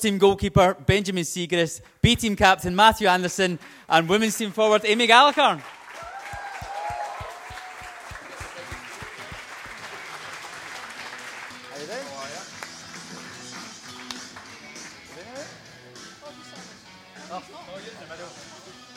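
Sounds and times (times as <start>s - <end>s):
speech: 0.0s - 5.8s
audience applause for guests: 4.9s - 14.6s.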